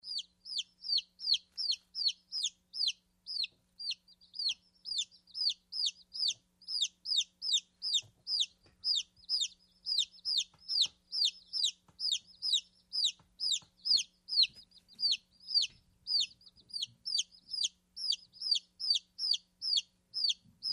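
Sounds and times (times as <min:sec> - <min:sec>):
chicken peeping: 0:00.0 - 0:20.7.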